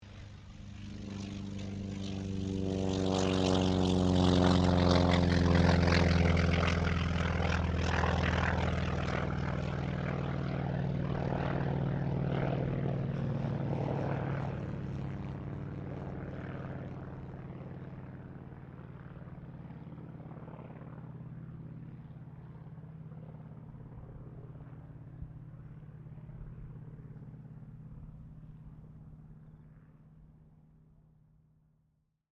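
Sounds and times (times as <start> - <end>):
T-28D Trojan aircraft takeoff: 0.0 - 31.4.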